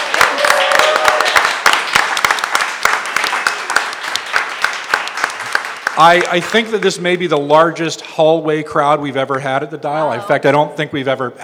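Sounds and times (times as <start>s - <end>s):
audience applause: 0.0s - 7.5s
speech: 6.0s - 11.4s.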